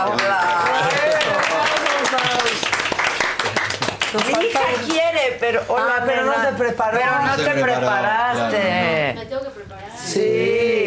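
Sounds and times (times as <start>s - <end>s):
crowd clapping: 0.0s - 5.2s
speech: 4.8s - 10.8s.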